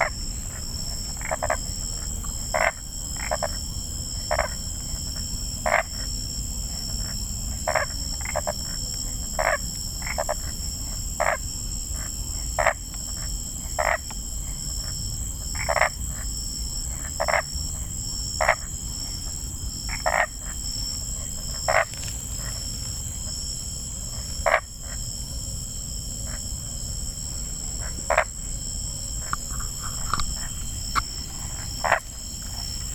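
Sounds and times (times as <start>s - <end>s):
Boana crepitans: 0.0s - 32.9s.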